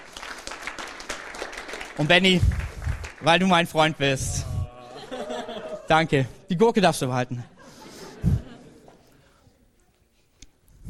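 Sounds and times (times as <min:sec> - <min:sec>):
audience applause: 0:00.0 - 0:03.4
speech: 0:02.0 - 0:04.5, 0:05.9 - 0:07.5
laughter: 0:04.3 - 0:06.2, 0:07.3 - 0:09.4.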